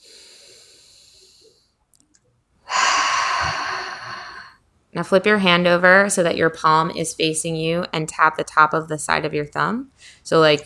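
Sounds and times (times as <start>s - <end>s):
deep breath during a guided tapping exercise: 0.0s - 1.6s, 2.7s - 4.6s
speech: 5.0s - 10.6s.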